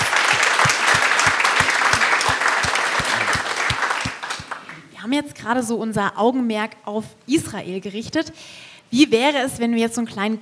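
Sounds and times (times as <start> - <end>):
audience applause: 0.0 - 4.8
speech: 5.1 - 10.4.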